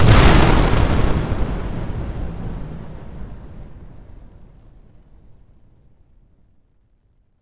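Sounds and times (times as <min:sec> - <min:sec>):
bomb blast explosion: 0:00.0 - 0:05.9.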